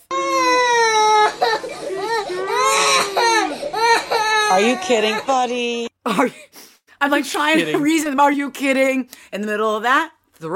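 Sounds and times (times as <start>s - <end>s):
child wailing during teeth cleaning: 0.1s - 5.3s
speech: 4.5s - 10.5s.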